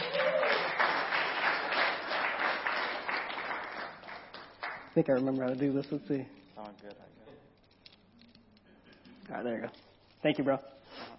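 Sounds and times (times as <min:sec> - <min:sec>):
crowd applauding: 0:00.0 - 0:04.9
speech: 0:05.0 - 0:07.2, 0:09.3 - 0:10.8.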